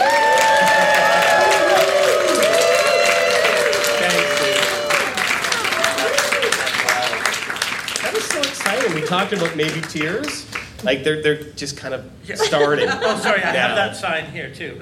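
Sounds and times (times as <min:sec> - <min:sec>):
voices cheering and whooping: 0:00.0 - 0:07.0
audience clapping: 0:00.0 - 0:11.0
speech: 0:09.1 - 0:14.7
laughter: 0:12.3 - 0:13.9.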